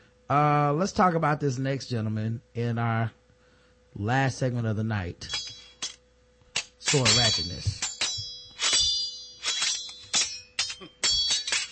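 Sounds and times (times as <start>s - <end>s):
speech: 0.3s - 3.2s, 4.0s - 5.4s, 6.9s - 7.8s
silverware dropping and clattering: 5.3s - 6.0s, 6.6s - 11.7s.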